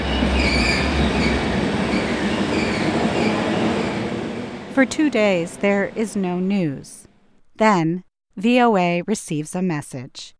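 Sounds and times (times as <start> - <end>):
train rolling on rails: 0.0 - 7.0
speech: 4.8 - 7.0, 7.6 - 10.3.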